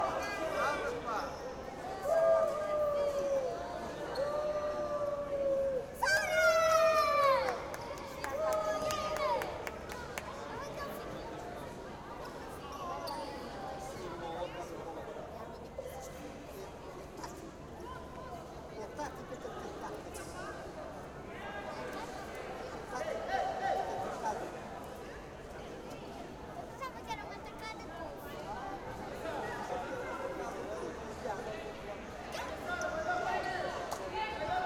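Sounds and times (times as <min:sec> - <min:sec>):
women's league futsal match ambience: 0:00.0 - 0:34.6.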